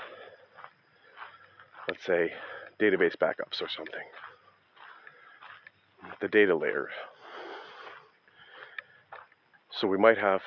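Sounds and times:
heavy breathing while walking uphill: 0.0 - 2.8, 4.1 - 5.7, 6.8 - 9.2
speech: 1.9 - 4.4, 6.2 - 7.1, 9.8 - 10.4.

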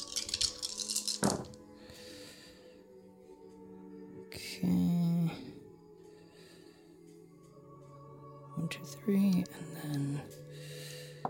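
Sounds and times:
dice being rolled: 0.0 - 1.6
speech: 8.8 - 10.4.

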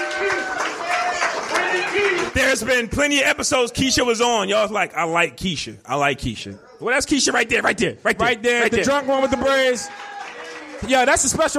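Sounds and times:
audience applause: 0.0 - 2.8, 8.8 - 11.5
speech: 2.5 - 10.1, 10.8 - 11.5.

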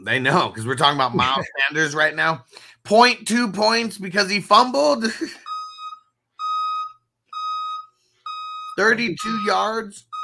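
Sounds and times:
speech: 0.0 - 5.4, 8.8 - 10.1
dump truck reversing beeps: 5.4 - 10.2.

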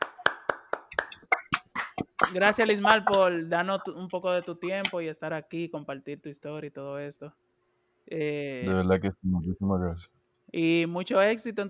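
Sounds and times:
applause for the guest: 0.0 - 3.2
speech: 2.0 - 7.5, 8.1 - 11.6.

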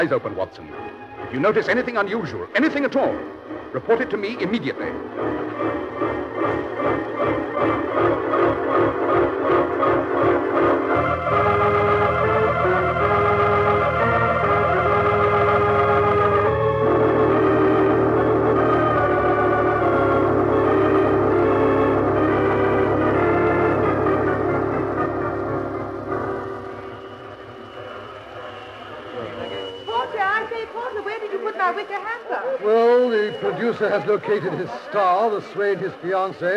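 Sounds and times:
speech: 0.0 - 8.3, 33.7 - 36.5
train arriving at station, chugging: 0.0 - 36.5
laughter: 32.0 - 36.5.

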